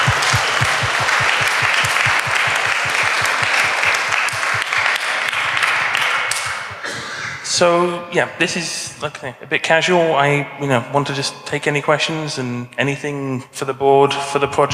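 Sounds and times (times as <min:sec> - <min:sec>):
audience round of applause: 0:00.0 - 0:06.8
speech: 0:07.6 - 0:14.7.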